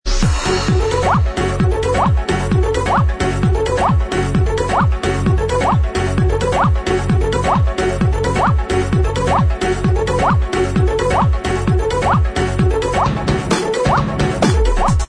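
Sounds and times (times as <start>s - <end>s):
instrumental music track: 0.1s - 15.0s.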